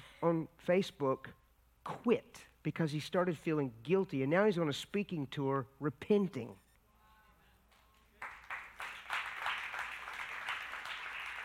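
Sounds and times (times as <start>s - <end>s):
speech: 0.2s - 6.6s
hesitant scattered audience clapping: 7.7s - 11.4s.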